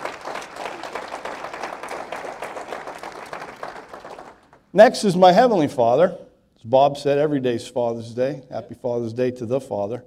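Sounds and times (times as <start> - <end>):
church audience applause: 0.0 - 4.6
speech: 4.7 - 10.0.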